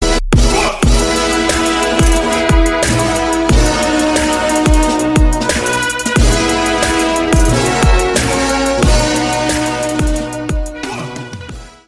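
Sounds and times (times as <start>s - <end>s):
graduation song remix: 0.0s - 11.8s.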